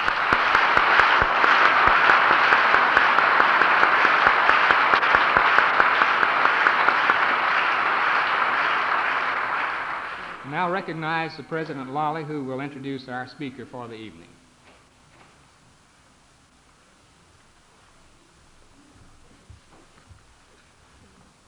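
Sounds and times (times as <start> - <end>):
audience applause: 0.0 - 12.6
speech: 10.8 - 14.4.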